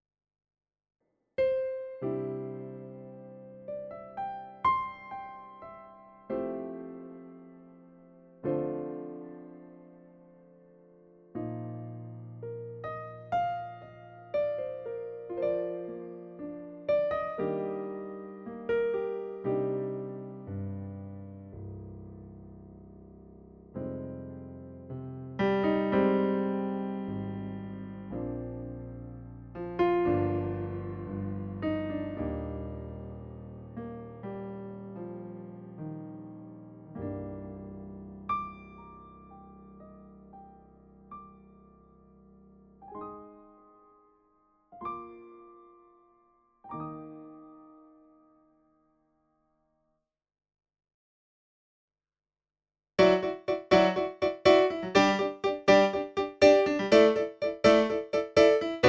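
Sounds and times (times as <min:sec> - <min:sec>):
piano: 0:01.4 - 0:49.8, 0:53.0 - 0:58.8.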